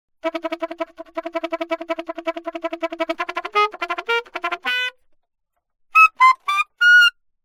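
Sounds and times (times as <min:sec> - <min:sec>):
alto saxophone: 0:00.2 - 0:05.0, 0:06.0 - 0:07.1.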